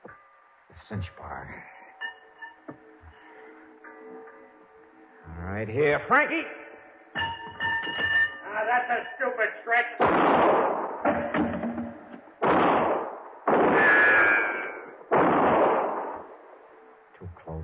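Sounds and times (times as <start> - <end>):
speech: 0.9 - 1.8, 5.4 - 6.6, 7.8 - 10.8
gunshots in an old-time radio detective drama set in a warehouse: 10.0 - 16.4.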